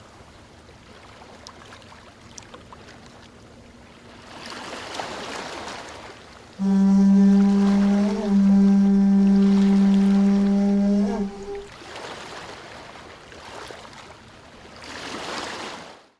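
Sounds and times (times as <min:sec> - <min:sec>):
ocean waves on a tropical beach: 0:00.0 - 0:16.1
music on a tropical beach at sunset: 0:06.6 - 0:11.7.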